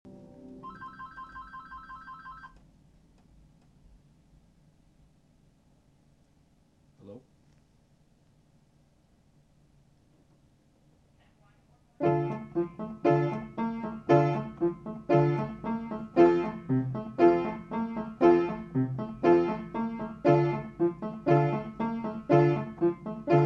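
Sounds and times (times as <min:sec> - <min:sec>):
piano: 0:00.0 - 0:01.5, 0:12.0 - 0:23.4.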